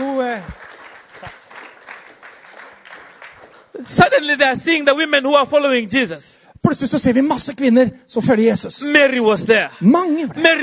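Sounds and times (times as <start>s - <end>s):
audience hand clapping: 0.0s - 4.5s
speech: 3.8s - 10.6s.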